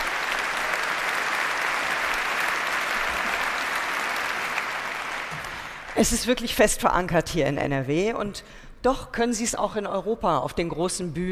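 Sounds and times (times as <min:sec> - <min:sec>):
audience applause: 0:00.0 - 0:06.2
speech: 0:06.0 - 0:11.3.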